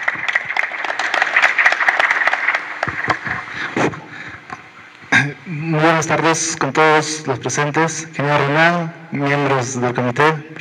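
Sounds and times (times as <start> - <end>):
audience applause: 0.0 - 4.6
speech: 5.4 - 10.6.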